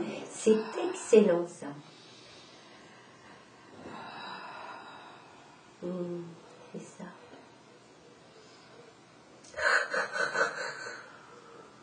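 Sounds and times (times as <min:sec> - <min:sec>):
speech: 0:00.0 - 0:02.0, 0:05.8 - 0:07.2
person yawning: 0:09.6 - 0:11.2.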